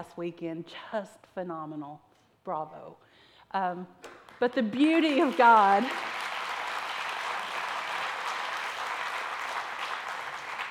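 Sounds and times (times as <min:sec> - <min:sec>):
speech: 0:00.0 - 0:06.2
audience applause: 0:05.3 - 0:10.6.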